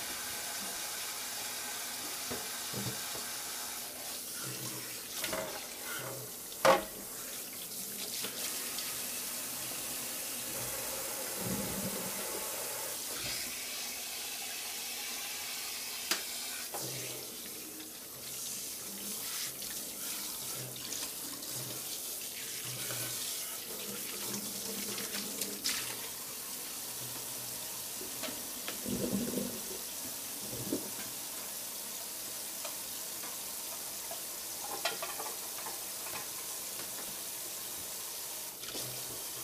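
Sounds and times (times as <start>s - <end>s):
running water at a sink: 0.0s - 39.4s
plates and utensils clinking: 34.6s - 36.4s.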